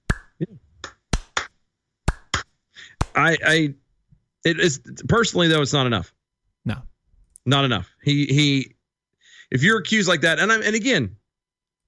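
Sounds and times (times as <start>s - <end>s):
slow clap: 0.0s - 3.2s
speech: 3.2s - 3.8s, 4.4s - 8.8s, 9.5s - 11.2s.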